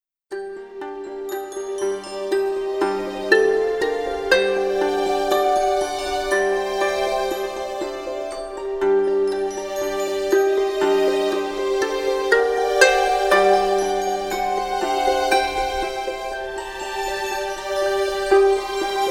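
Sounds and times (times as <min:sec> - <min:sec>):
strumstick: 0:00.6 - 0:19.0.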